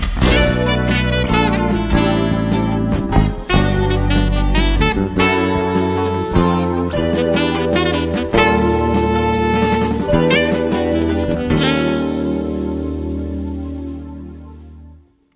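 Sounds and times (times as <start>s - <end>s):
free melody: 0.2s - 15.0s.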